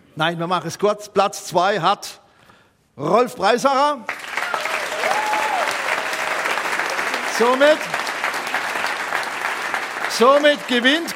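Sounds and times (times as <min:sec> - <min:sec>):
speech: 0:00.2 - 0:02.2, 0:03.0 - 0:04.2, 0:07.4 - 0:08.0, 0:10.2 - 0:11.1
crowd applause: 0:04.1 - 0:11.1
whoop or cheer: 0:04.4 - 0:06.6.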